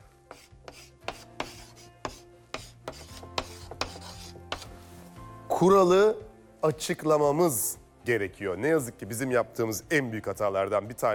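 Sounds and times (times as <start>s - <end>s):
writing with a pink marker: 0.3s - 4.7s
speech: 5.6s - 11.1s.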